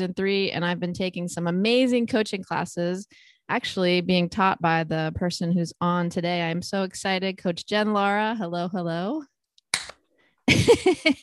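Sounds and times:
speech: 0.0s - 9.3s, 10.5s - 11.2s
person clapping: 9.7s - 10.0s.

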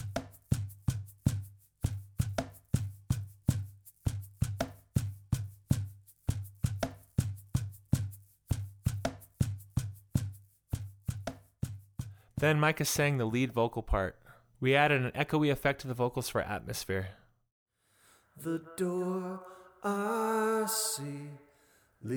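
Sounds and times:
cajon: 0.0s - 12.2s
shaker: 0.0s - 12.4s
speech: 12.4s - 17.2s, 18.4s - 21.4s.

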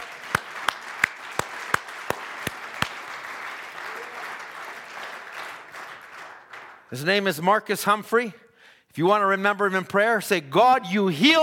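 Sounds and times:
audience clapping hands: 0.0s - 7.4s
speech: 6.9s - 8.4s, 9.0s - 11.4s.

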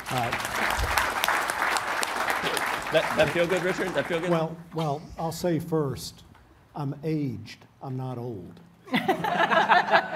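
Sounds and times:
audience round of applause: 0.0s - 4.4s
speech: 0.1s - 0.6s, 2.4s - 10.1s
laughter: 8.9s - 10.1s.

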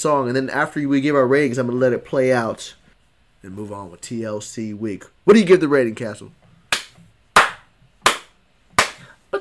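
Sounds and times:
speech: 0.0s - 2.8s, 3.4s - 6.4s
hand slaps: 6.7s - 9.1s.

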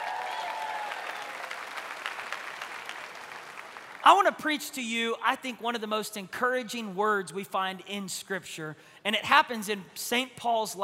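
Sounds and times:
church service audience applause welcoming online viewers: 0.0s - 4.0s
speech: 4.1s - 10.8s.

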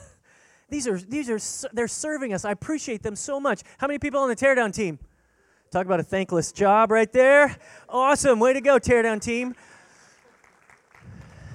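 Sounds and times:
speech: 0.7s - 5.1s, 5.7s - 9.7s
golf clap: 9.4s - 11.5s.

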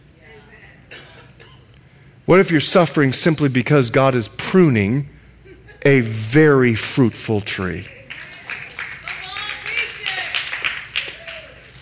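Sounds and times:
speech: 2.3s - 5.1s, 5.8s - 8.0s
audience clapping: 7.8s - 11.8s.

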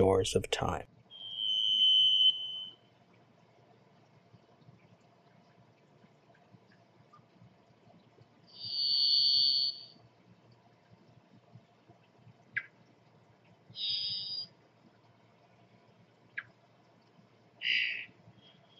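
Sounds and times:
speech: 0.0s - 1.0s
varied thrush long-drawn song note: 1.1s - 2.9s, 8.5s - 10.0s, 13.8s - 14.5s, 17.6s - 18.7s.

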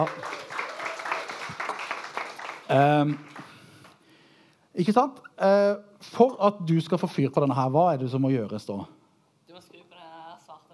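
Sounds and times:
speech: 0.0s - 0.4s, 2.7s - 3.4s, 4.8s - 9.0s
audience applause: 0.0s - 4.0s.

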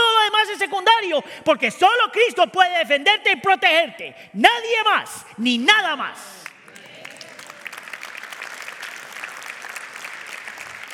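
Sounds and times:
speech: 0.8s - 6.4s
audience applause: 6.4s - 10.9s.

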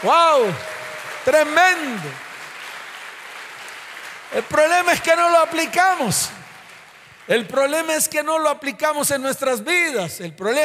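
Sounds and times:
speech: 0.0s - 2.2s, 4.3s - 6.4s, 7.3s - 10.6s
audience applause: 0.0s - 8.0s.

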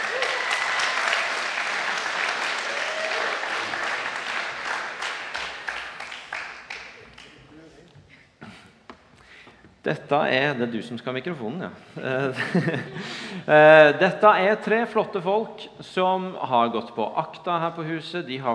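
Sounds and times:
audience applause: 0.0s - 7.4s
speech: 9.9s - 18.5s
laughter: 12.1s - 13.5s.

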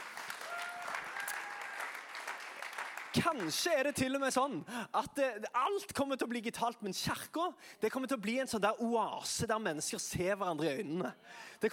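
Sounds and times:
audience applause: 0.0s - 3.7s
speech: 3.1s - 11.7s.

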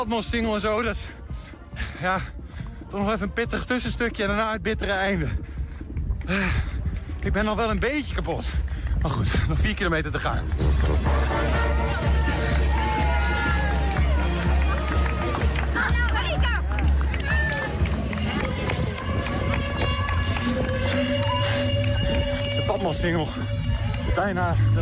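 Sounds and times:
speech: 0.0s - 5.6s, 6.3s - 11.2s, 22.9s - 23.6s, 24.2s - 24.8s
crowd hubbub of spectators along a running race route: 10.4s - 24.8s.

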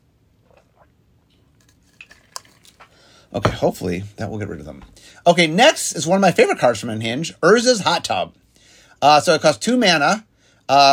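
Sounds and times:
sipping water: 0.3s - 3.3s
speech: 3.3s - 8.4s, 9.0s - 10.9s.

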